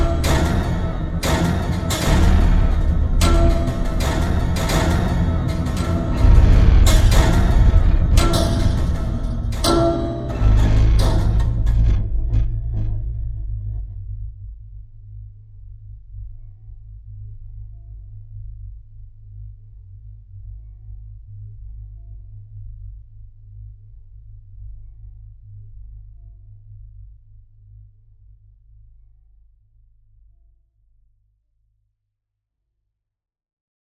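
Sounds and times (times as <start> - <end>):
homemade instrument: 0.0 - 13.2.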